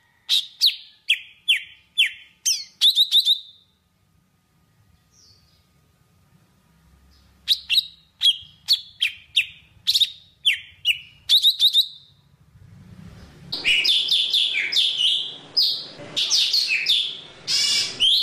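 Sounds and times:
Java sparrow singing: 0.4s - 3.6s, 7.4s - 12.2s, 13.6s - 18.2s.

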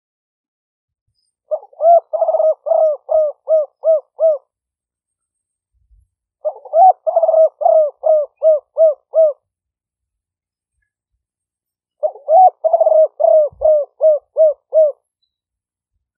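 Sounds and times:
spotted dove cooing: 1.5s - 4.5s, 6.4s - 9.4s, 12.0s - 15.0s.

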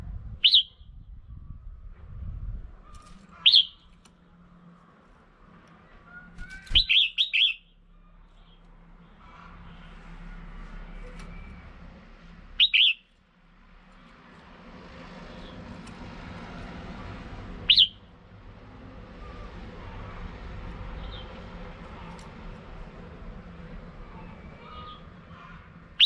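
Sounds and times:
low traffic-like rumble: 0.0s - 26.0s
red-whiskered bulbul calling: 0.4s - 0.8s, 2.9s - 3.9s, 6.2s - 7.7s, 12.6s - 13.1s, 17.7s - 18.0s, 24.2s - 26.0s.

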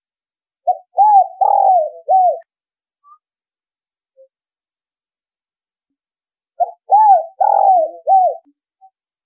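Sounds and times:
spotted dove cooing: 0.6s - 2.5s, 6.6s - 8.5s.

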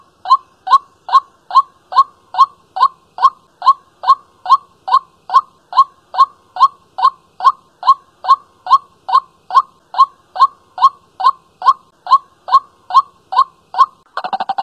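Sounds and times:
white-breasted waterhen calling: 0.0s - 14.6s.

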